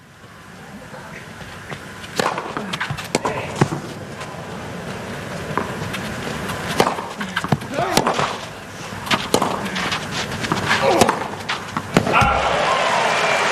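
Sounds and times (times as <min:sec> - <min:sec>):
tennis ball bouncing in a tennis match: 0:01.7 - 0:12.4
first serve hit in a tennis match: 0:02.1 - 0:03.9, 0:05.5 - 0:12.6.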